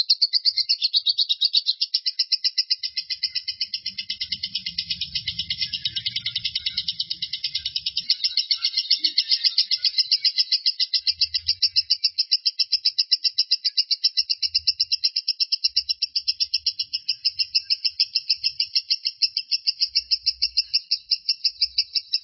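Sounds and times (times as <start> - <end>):
lovebird singing a long high-pitched trill: 0.0 - 22.2.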